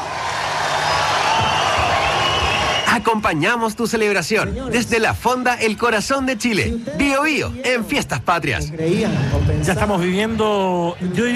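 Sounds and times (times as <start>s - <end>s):
audience applause: 0.0s - 3.1s
speech: 3.0s - 11.3s.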